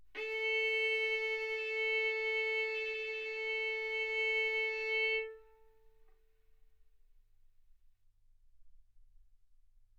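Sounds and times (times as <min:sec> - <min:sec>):
violin arco on A string: 0:00.2 - 0:06.0.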